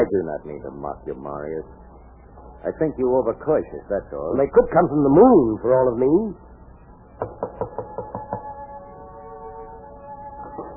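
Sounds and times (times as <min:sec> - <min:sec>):
speech: 0:00.0 - 0:01.9, 0:02.6 - 0:06.5
knocking on a door: 0:07.2 - 0:08.5.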